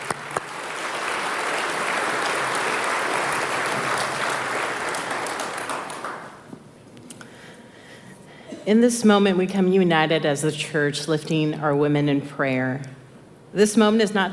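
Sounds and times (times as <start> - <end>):
church congregation applauding to welcome a speaker: 0.0 - 6.5
speech: 8.7 - 14.3.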